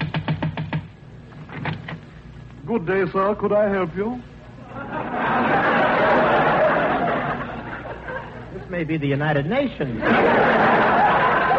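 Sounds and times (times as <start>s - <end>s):
knocking on a door: 0.0s - 0.9s
speech: 2.7s - 4.3s, 8.7s - 11.1s
laughter: 4.6s - 8.8s, 9.8s - 11.5s.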